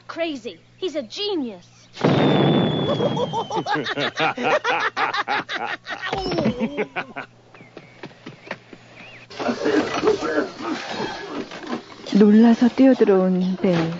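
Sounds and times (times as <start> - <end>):
speech: 0.2 - 7.4, 9.4 - 13.9
loud explosion in Belle's house: 2.0 - 3.4
laughter: 2.9 - 7.3, 9.3 - 11.0.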